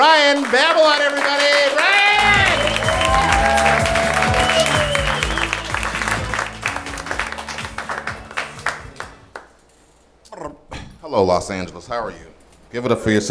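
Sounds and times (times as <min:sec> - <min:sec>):
audience applauding: 0:00.0 - 0:09.6
speech: 0:00.3 - 0:01.5, 0:11.2 - 0:13.3
voices and whistles: 0:02.0 - 0:06.3.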